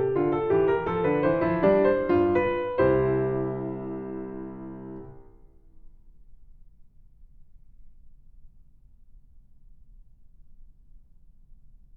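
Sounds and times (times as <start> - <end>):
classical keyboard piece in C major: 0.0 - 5.4.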